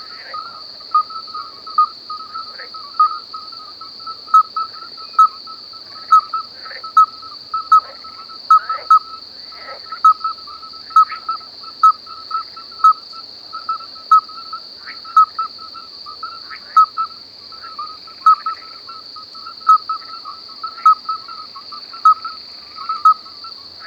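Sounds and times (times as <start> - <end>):
crickets chirping at night in a wasteland: 0.0 - 23.8.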